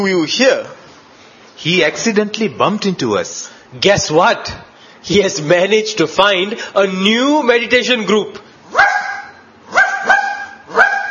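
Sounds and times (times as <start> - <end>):
speech: 0.0 - 0.8, 1.6 - 9.0
pet dog barking: 8.7 - 11.0.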